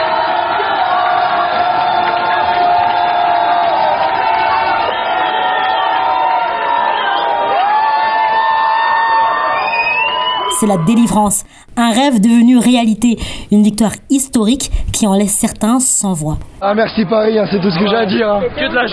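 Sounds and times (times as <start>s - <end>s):
football supporters cheering in a bar: 0.0s - 10.5s
speech: 10.6s - 18.9s.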